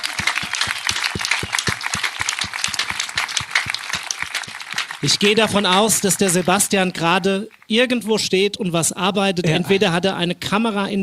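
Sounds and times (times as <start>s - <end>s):
sustained audience applause: 0.0s - 7.2s
speech: 5.0s - 11.0s.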